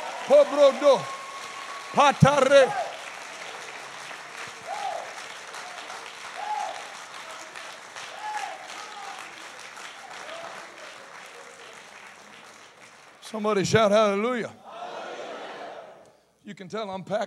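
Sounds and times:
audience applause: 0:00.0 - 0:13.7
speech: 0:00.3 - 0:01.2, 0:01.9 - 0:02.8, 0:13.3 - 0:14.6, 0:16.5 - 0:17.2.

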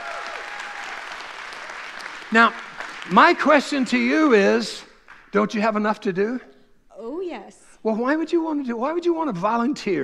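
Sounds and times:
audience applause: 0:00.0 - 0:05.3
speech: 0:02.3 - 0:06.5, 0:07.4 - 0:10.0.

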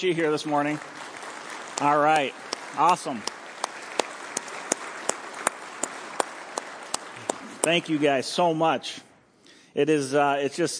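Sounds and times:
speech: 0:00.0 - 0:01.0, 0:01.8 - 0:03.4, 0:07.6 - 0:09.1, 0:09.8 - 0:10.7
audience applause: 0:00.0 - 0:08.6.

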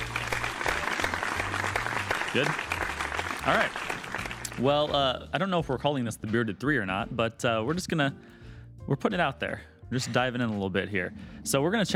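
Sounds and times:
clapping soundtrack: 0:00.0 - 0:04.7
speech: 0:02.3 - 0:02.7, 0:03.4 - 0:03.9, 0:04.6 - 0:11.9.

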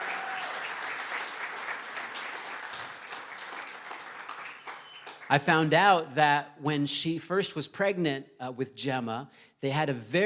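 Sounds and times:
audience applause for a couple's newborn baby: 0:00.0 - 0:05.3
speech: 0:05.3 - 0:10.2.

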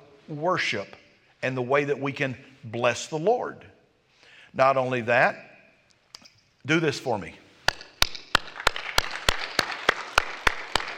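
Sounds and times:
speech: 0:00.3 - 0:03.7, 0:04.5 - 0:05.5, 0:06.6 - 0:07.4
rhythmic clapping from an audience in unison: 0:07.6 - 0:10.9.

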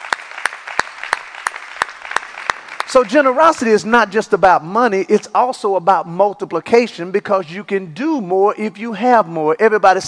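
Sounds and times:
scattered clapping: 0:00.0 - 0:03.7
church congregation clapping in rhythm: 0:00.0 - 0:04.4
speech: 0:02.9 - 0:10.0.

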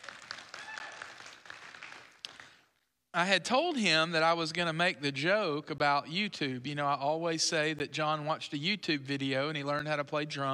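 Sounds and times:
audience clapping: 0:00.0 - 0:02.8
speech: 0:03.1 - 0:10.5.

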